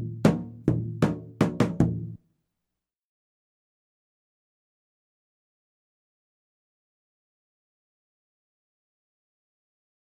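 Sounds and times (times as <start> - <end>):
davul drum playing a karsilama rhythm: 0.0 - 2.2.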